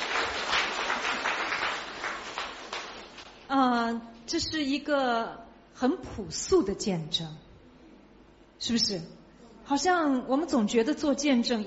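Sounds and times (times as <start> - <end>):
audience applause: 0.0 - 3.3
speech: 3.5 - 7.5, 8.6 - 11.6.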